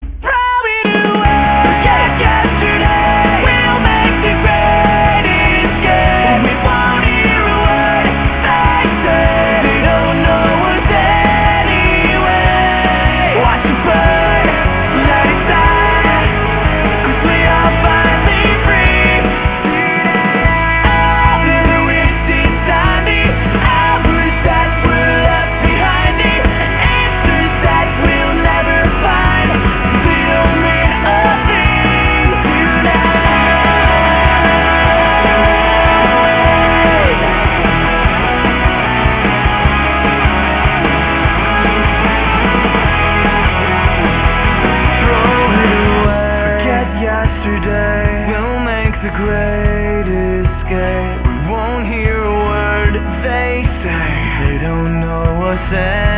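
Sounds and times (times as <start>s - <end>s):
disco music: 0.0s - 56.1s.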